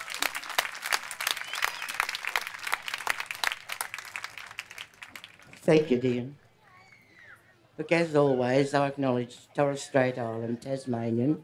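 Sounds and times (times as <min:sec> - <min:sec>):
crowd applause: 0:00.0 - 0:05.9
speech: 0:05.6 - 0:06.4, 0:07.8 - 0:11.4.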